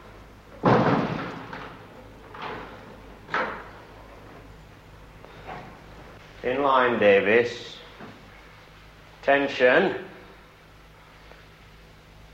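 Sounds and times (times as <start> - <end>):
heavy cell door banging shut: 0.6 - 3.7
speech: 6.4 - 7.8, 9.2 - 10.1.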